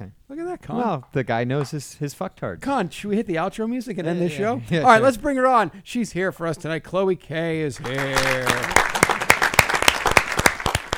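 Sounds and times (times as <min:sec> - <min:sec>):
speech: 0:00.0 - 0:08.8
audience applause: 0:07.8 - 0:10.9.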